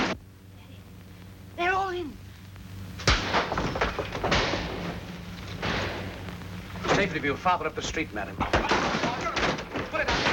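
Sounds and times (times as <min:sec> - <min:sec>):
locked doors smashed in: 0:03.0 - 0:06.1, 0:08.4 - 0:10.3
speech: 0:07.0 - 0:09.0.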